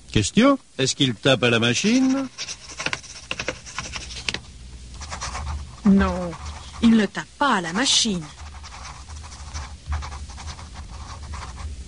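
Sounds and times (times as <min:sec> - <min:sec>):
speech: 0:00.1 - 0:02.6, 0:05.8 - 0:08.4
pen writing on paper: 0:01.8 - 0:04.4, 0:05.0 - 0:07.0, 0:07.7 - 0:11.6.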